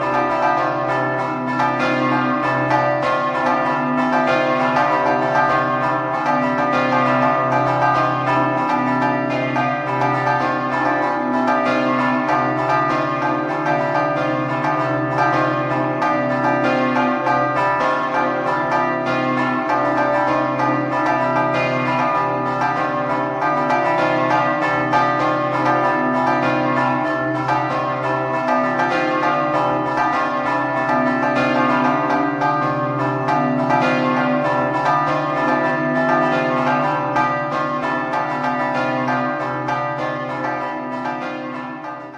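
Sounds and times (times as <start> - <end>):
bells ringing in Paderno: 0.0 - 42.1.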